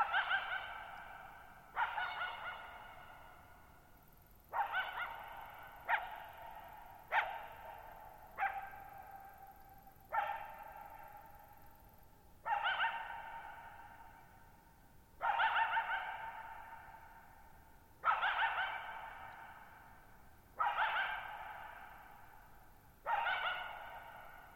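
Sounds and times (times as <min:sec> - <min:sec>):
coyote barking and howling: 0:00.0 - 0:03.6, 0:04.5 - 0:09.4, 0:12.4 - 0:14.3, 0:15.2 - 0:17.3, 0:18.0 - 0:24.5
hiss: 0:00.0 - 0:24.5.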